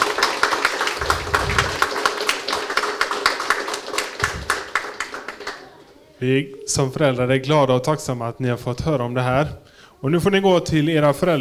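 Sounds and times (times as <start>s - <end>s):
audience applauding the children: 0.0s - 6.2s
speech: 6.2s - 11.3s.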